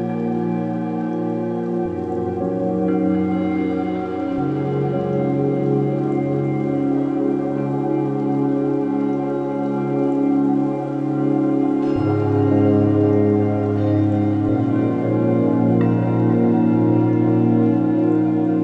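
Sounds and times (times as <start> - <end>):
741 Hz frequency ambient meditation music: 0.0 - 18.6.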